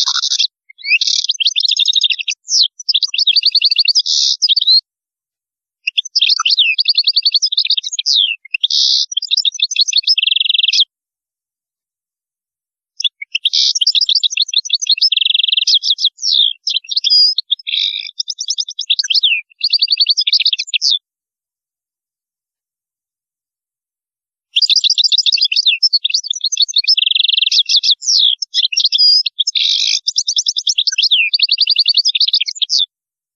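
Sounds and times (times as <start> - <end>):
European goldfinch twittering song: 0.0 - 4.8, 5.9 - 10.9, 13.0 - 21.0, 24.6 - 32.8.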